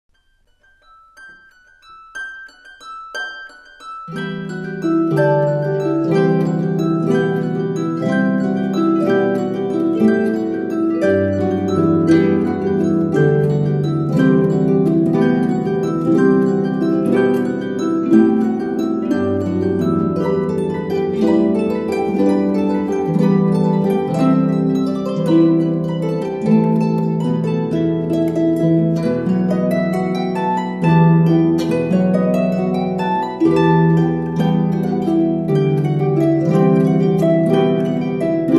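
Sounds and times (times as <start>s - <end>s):
Christmas bells: 0.1s - 38.5s
Christmas carols on the harp: 0.1s - 38.5s.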